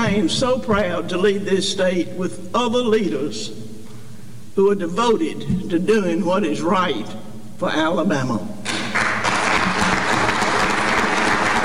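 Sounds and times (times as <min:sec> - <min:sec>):
speech: 0:00.0 - 0:03.6, 0:04.6 - 0:08.6
audience applause: 0:08.7 - 0:11.6.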